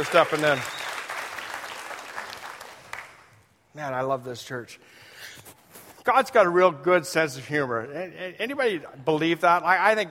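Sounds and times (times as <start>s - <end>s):
speech: 0.0s - 0.8s, 3.8s - 10.0s
church congregation applause: 0.0s - 3.5s.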